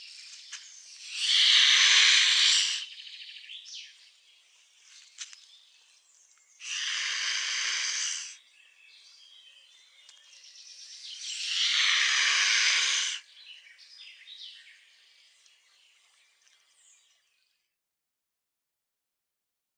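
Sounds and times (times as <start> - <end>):
mute swan hissing: 1.0 - 3.0, 6.6 - 8.4, 11.2 - 13.2.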